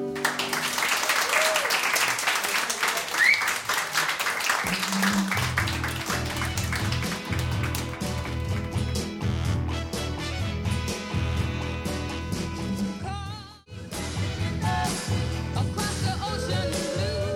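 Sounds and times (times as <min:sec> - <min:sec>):
large crowd applause: 0:00.1 - 0:09.1
bass-heavy song: 0:04.7 - 0:17.3.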